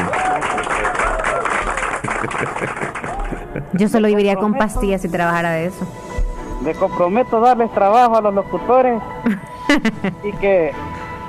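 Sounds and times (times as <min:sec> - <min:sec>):
audience applause: 0:00.0 - 0:03.8
laughter: 0:00.0 - 0:04.1, 0:09.3 - 0:10.4
speech: 0:03.8 - 0:10.8.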